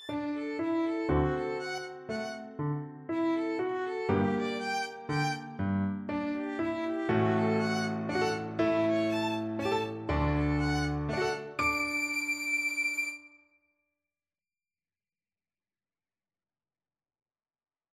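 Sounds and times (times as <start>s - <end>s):
slow waltz on violin: 0.0s - 13.1s.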